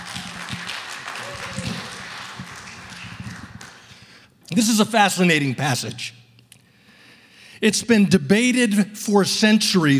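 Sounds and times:
audience applause welcoming a pastor: 0:00.0 - 0:04.0
speech: 0:04.6 - 0:06.2, 0:07.6 - 0:09.9.

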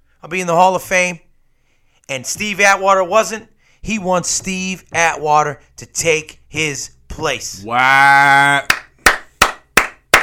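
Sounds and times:
speech: 0:00.2 - 0:01.2, 0:02.1 - 0:08.8
short sustained vocal tone: 0:07.5 - 0:08.7
hand clapping: 0:08.6 - 0:10.2.

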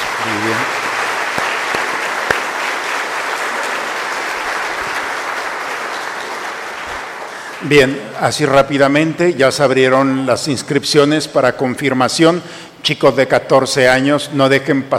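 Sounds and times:
audience applause: 0:00.0 - 0:07.9
speech: 0:00.2 - 0:00.8, 0:07.6 - 0:14.9.

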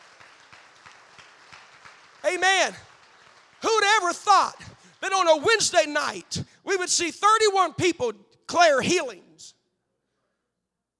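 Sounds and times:
audience clapping: 0:00.0 - 0:06.4
speech: 0:02.2 - 0:02.9, 0:03.6 - 0:09.6.

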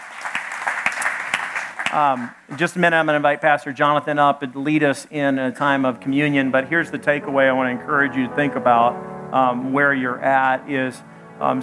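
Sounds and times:
audience clapping: 0:00.0 - 0:02.8
speech: 0:01.9 - 0:11.6.

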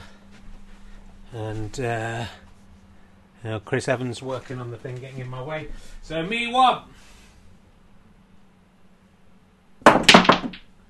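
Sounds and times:
speech: 0:01.3 - 0:02.5, 0:03.4 - 0:07.1
snooker balls clacking as a shot pots two reds: 0:09.8 - 0:10.7.

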